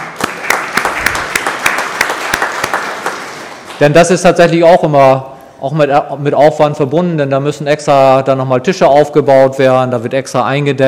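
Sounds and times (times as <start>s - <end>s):
audience applause: 0.0s - 3.8s
speech: 3.8s - 10.8s.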